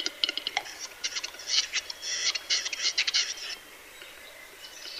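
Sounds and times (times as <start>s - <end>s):
capercaillie calling: 0.1s - 3.5s.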